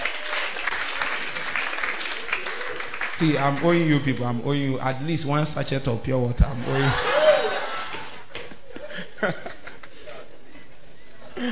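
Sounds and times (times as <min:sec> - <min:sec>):
audience clapping: 0:00.0 - 0:04.4
speech: 0:03.2 - 0:07.2, 0:09.2 - 0:09.5
laughter: 0:06.6 - 0:11.5.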